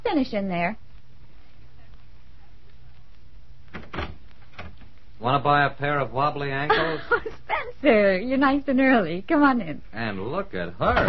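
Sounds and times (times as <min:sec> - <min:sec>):
speech: 0:00.1 - 0:00.8, 0:05.2 - 0:11.0
front door opening: 0:03.7 - 0:04.9, 0:10.8 - 0:11.0
laughter: 0:06.6 - 0:07.6.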